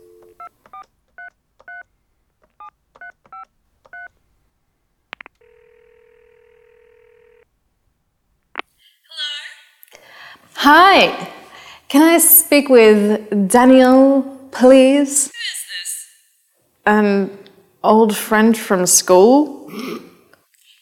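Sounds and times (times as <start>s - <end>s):
telephone clicks: 0.0s - 4.2s, 5.1s - 5.4s
telephone keypad dialing tones: 0.2s - 1.9s, 2.6s - 4.1s
steady telephone ringing tone: 5.4s - 7.5s
speech: 10.6s - 11.3s, 11.9s - 15.4s, 16.8s - 20.0s.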